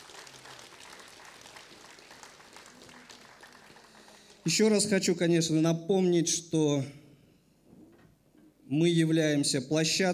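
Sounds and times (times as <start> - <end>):
audience applause: 0.0 - 4.5
speech: 4.4 - 7.0, 8.7 - 10.1.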